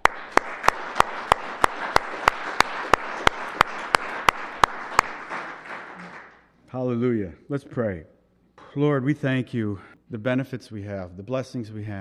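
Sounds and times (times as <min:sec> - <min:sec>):
audience applause: 0:00.0 - 0:06.5
sharp steady clapping: 0:00.0 - 0:06.5
speech: 0:07.0 - 0:11.9.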